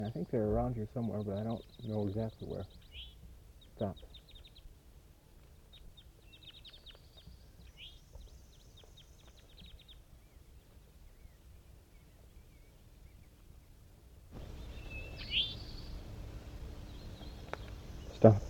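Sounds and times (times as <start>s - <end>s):
captive birds calling in response to wild birds: 0.0s - 4.8s, 5.4s - 18.4s
speech: 0.1s - 3.1s, 3.8s - 4.2s, 18.2s - 18.4s.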